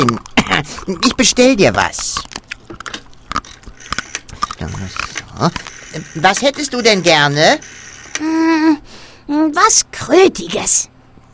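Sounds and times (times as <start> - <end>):
creature chewing on laboratory tongs: 0.0 - 8.2
speech: 0.6 - 2.3, 4.6 - 11.3.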